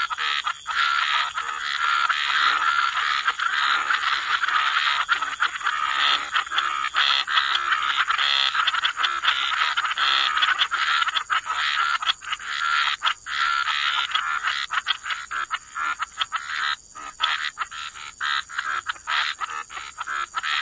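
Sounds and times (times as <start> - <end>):
frog chorus croaking: 0.0 - 20.6.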